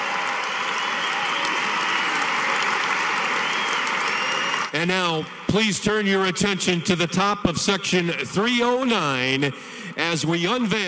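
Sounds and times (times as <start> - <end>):
arena crowd applause at the Carrier Dome: 0.0 - 4.9
speech: 4.7 - 10.8.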